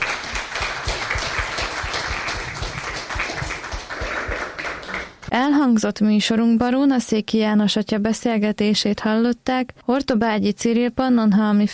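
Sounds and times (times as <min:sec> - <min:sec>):
audience applause: 0:00.0 - 0:05.2
speech: 0:05.3 - 0:11.7.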